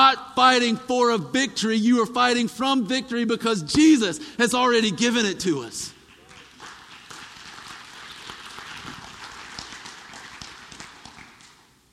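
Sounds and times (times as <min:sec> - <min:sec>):
speech: 0:00.1 - 0:06.0
audience clapping: 0:06.0 - 0:11.8.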